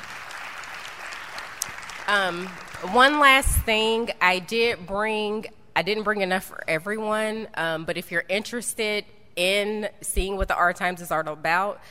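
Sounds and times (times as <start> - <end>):
audience round of applause: 0.0 - 2.9
speech: 2.1 - 11.8.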